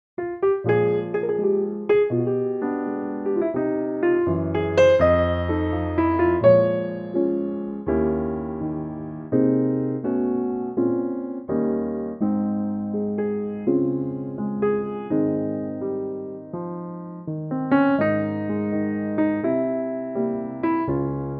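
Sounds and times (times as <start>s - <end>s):
piano in A-flat: 0.2s - 21.3s.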